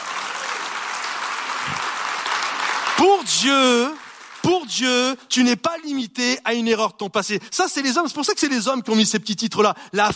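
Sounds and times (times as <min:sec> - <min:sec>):
audience applauding: 0:00.0 - 0:05.4
speech: 0:03.0 - 0:04.0, 0:04.6 - 0:10.1.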